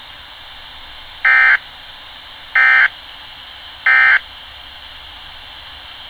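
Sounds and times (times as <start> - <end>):
alarm: 1.3 - 1.6, 2.6 - 2.9, 3.9 - 4.2.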